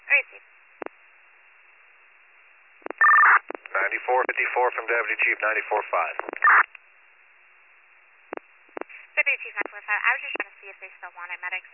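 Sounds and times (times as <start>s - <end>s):
speech: 0.2s - 0.6s, 4.0s - 6.8s, 9.2s - 11.7s
telephone dialing tones: 2.9s - 3.4s.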